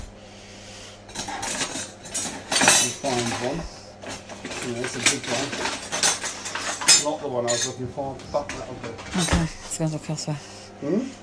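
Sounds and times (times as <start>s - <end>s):
metal cutlery rummaged through in a dishwasher: 1.1s - 7.8s
speech: 3.0s - 3.8s, 4.6s - 5.8s, 7.0s - 11.2s.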